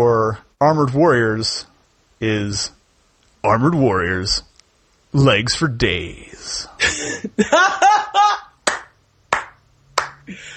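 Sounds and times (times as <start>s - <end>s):
speech: 0.0s - 2.8s, 3.4s - 4.5s, 5.1s - 8.4s
laughter: 6.8s - 8.6s
hand claps: 8.6s - 10.3s.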